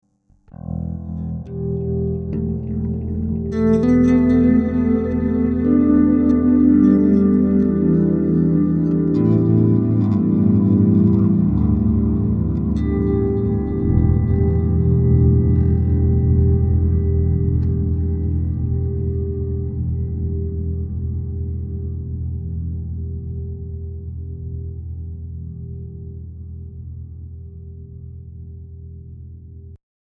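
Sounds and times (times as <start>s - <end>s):
atmosphere: 0.5s - 29.7s.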